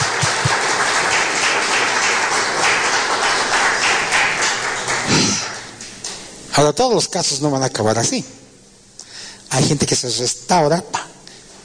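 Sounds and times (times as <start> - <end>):
audience applause: 0.0 - 5.8
speech: 6.6 - 8.4, 9.5 - 11.1.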